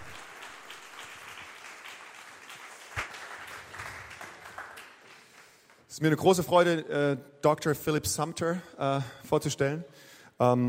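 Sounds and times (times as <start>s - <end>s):
audience clapping: 0.0s - 5.9s
speech: 6.0s - 10.6s.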